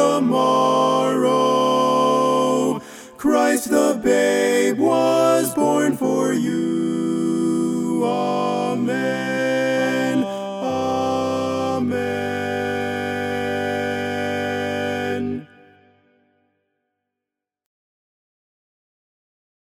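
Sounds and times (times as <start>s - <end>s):
baritone playing a carol: 0.0s - 15.7s.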